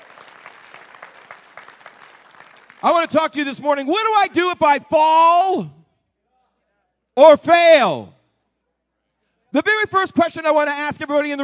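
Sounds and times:
church congregation clapping during a morning service: 0:00.0 - 0:03.5
speech: 0:02.8 - 0:05.8, 0:07.2 - 0:08.2, 0:09.5 - 0:11.4.

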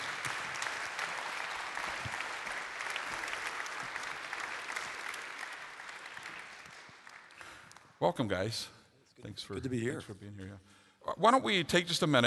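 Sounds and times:
audience applause welcoming a pastor and his wife onto the stage: 0:00.0 - 0:07.8
speech: 0:08.0 - 0:12.2.

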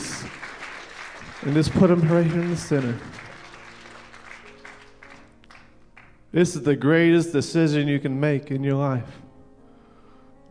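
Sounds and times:
audience clapping hands: 0:00.0 - 0:06.2
speech: 0:01.4 - 0:03.2, 0:06.3 - 0:09.2.

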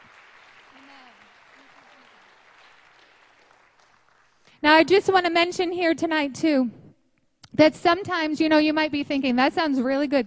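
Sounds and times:
audience hand clapping applause: 0:00.0 - 0:04.5
speech: 0:04.6 - 0:06.8, 0:07.5 - 0:10.2.

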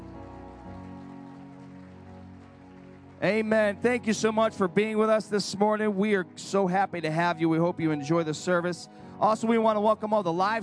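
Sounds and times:
audience hand clapping: 0:00.0 - 0:05.1
speech: 0:03.2 - 0:10.6.

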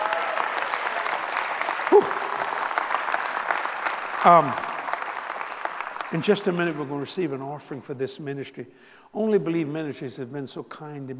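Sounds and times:
audience clapping: 0:00.0 - 0:07.6
vocal whoops: 0:01.8 - 0:02.6
speech: 0:01.9 - 0:02.2, 0:04.2 - 0:04.7, 0:06.1 - 0:11.1.

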